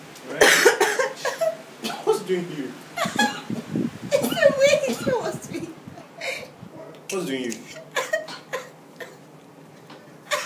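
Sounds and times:
coughing while laughing: 0.4 - 2.2, 3.0 - 5.2, 7.9 - 9.2, 10.3 - 10.4
speech: 2.3 - 3.3, 7.2 - 7.8.

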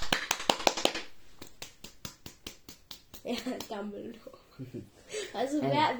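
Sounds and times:
hand claps: 0.0 - 3.9
speech: 3.2 - 5.9.

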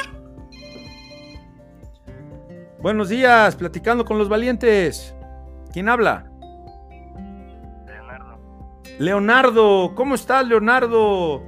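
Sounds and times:
electronic ringtone for an incoming phone call: 0.0 - 1.7
speech: 2.8 - 5.2, 5.8 - 6.3, 9.0 - 11.4.

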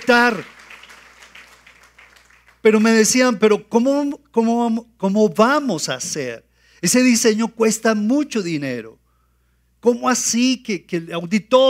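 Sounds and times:
speech: 0.0 - 0.6, 2.6 - 9.0, 9.8 - 11.6
crowd applauding: 0.0 - 2.8.

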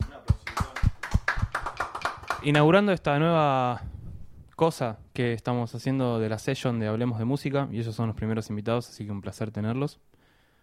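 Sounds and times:
applause: 0.3 - 2.7
speech: 2.4 - 4.0, 4.6 - 10.1.

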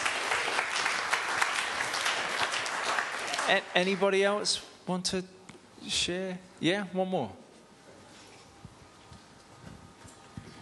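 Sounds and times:
round of applause: 0.0 - 4.4
speech: 3.5 - 7.4.

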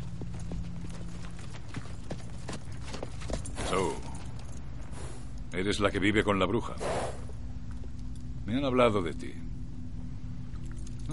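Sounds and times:
horse approaching, hoofbeats: 0.0 - 5.2
speech: 3.7 - 4.1, 5.6 - 7.2, 8.5 - 9.4.

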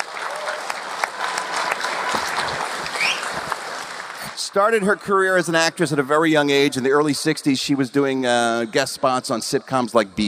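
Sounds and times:
audience applause: 0.0 - 5.0
speech: 4.5 - 10.2.

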